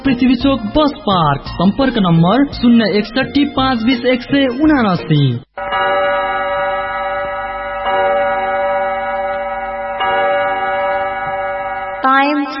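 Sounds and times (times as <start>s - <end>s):
speech: 0.1s - 5.8s
studio clock chime on a Nepali radio station marking 8 pm: 5.6s - 12.5s.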